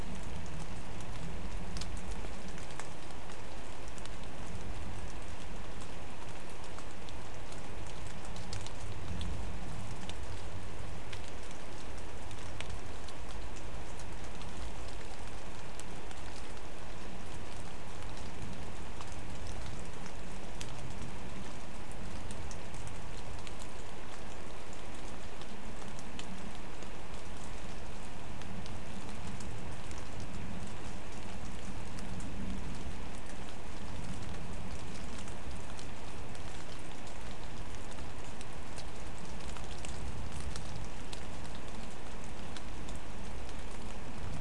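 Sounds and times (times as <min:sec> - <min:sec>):
rain: 0:00.0 - 0:44.4.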